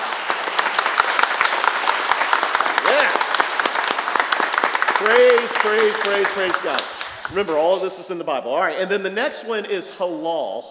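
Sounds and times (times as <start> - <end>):
audience clapping: 0.0 - 8.2
speech: 5.0 - 10.6.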